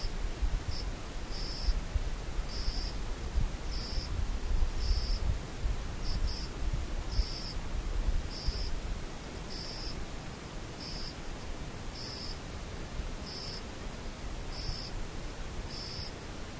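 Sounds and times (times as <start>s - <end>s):
insect chirping in short regular pulses: 0.0s - 1.8s, 2.5s - 3.0s, 3.7s - 4.2s, 4.8s - 5.3s, 6.0s - 6.5s, 7.1s - 7.6s, 8.3s - 8.8s, 9.5s - 11.2s, 11.9s - 12.4s, 13.2s - 13.7s, 14.5s - 15.0s, 15.7s - 16.2s
constant soft hiss: 0.0s - 16.5s.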